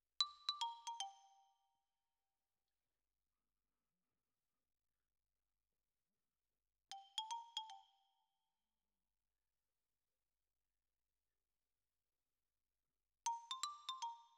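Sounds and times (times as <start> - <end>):
close xylophone: 0.2 - 1.6, 6.9 - 8.1, 13.3 - 14.3.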